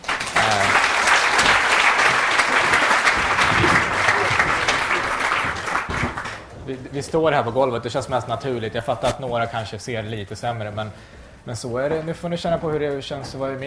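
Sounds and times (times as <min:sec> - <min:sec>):
audience applause: 0:00.0 - 0:06.6
speech: 0:06.7 - 0:13.6.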